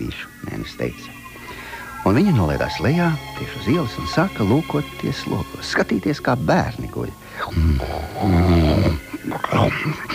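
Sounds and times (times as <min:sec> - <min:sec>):
speech: 0:00.0 - 0:01.2, 0:02.0 - 0:10.1
loud snoring: 0:07.4 - 0:09.2.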